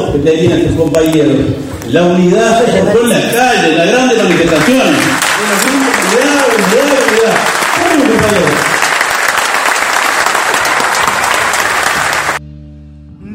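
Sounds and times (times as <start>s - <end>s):
speech: 0.1s - 6.3s, 7.1s - 8.8s
crowd ovation and applause: 4.1s - 12.4s.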